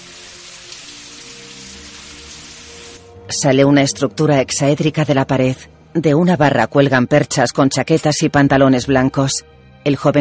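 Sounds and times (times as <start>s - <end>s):
shower water falling from ceiling grille: 0.0s - 3.0s
speech: 3.3s - 10.2s.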